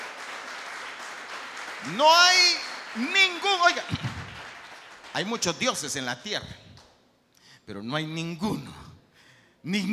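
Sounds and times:
applause: 0.0s - 6.0s
speech: 1.8s - 4.1s, 5.2s - 6.6s, 7.7s - 8.8s, 9.6s - 9.9s.

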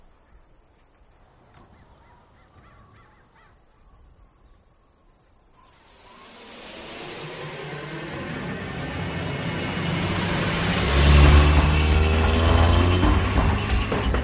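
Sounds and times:
car accelerating at full speed: 5.6s - 14.2s.

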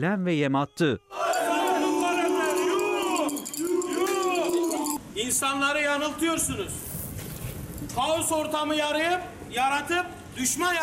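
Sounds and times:
speech: 0.0s - 1.2s, 5.2s - 6.9s, 7.8s - 10.8s
protesting crowd chanting outside newspaper office: 1.1s - 5.0s.

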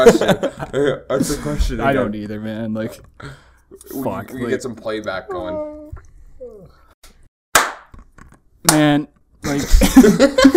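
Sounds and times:
laughter: 0.0s - 1.6s, 9.4s - 10.5s
speech: 0.0s - 6.8s, 8.6s - 10.5s
hands clapping: 7.5s - 8.0s, 8.6s - 9.0s.

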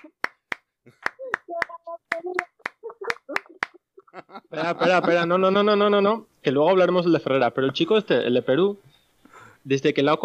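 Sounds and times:
audience clapping: 0.0s - 3.8s
laughter: 0.9s - 5.9s
speech: 4.4s - 8.9s, 9.6s - 10.2s.

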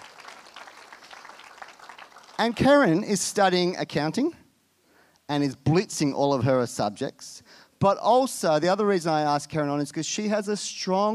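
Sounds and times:
audience clapping: 0.0s - 3.0s
speech: 2.4s - 4.4s, 5.3s - 11.1s.

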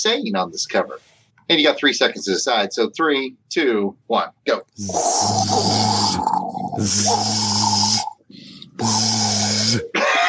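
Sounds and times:
speech: 0.0s - 7.7s, 8.8s - 10.1s
voice imitating bubbling lava: 4.8s - 10.2s.

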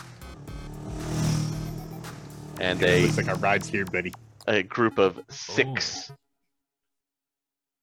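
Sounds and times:
racing motorcycles: 0.0s - 4.6s
speech: 2.6s - 6.2s.

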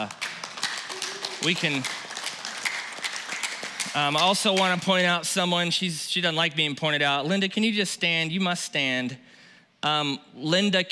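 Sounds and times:
speech: 0.0s - 0.2s, 1.4s - 2.0s, 3.9s - 10.9s
audience clapping: 0.0s - 5.2s.

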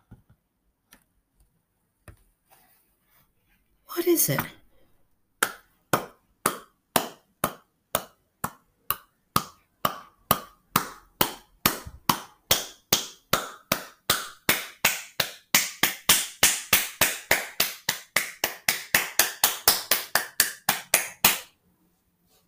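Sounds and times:
speech: 4.0s - 4.6s
hands clapping: 5.4s - 21.5s.

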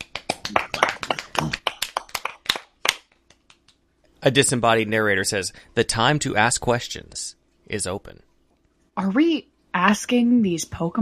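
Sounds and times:
crowd of people clapping: 0.0s - 3.8s
speech: 4.2s - 8.3s, 9.0s - 10.9s.

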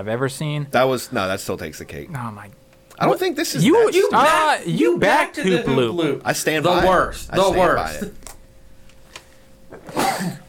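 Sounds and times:
speech: 0.0s - 8.2s
person sneezing: 9.8s - 10.4s.

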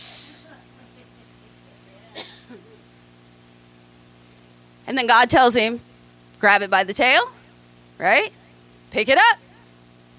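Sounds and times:
person imitating a snake hiss: 0.0s - 0.6s
speech: 4.9s - 7.4s, 8.0s - 9.4s.

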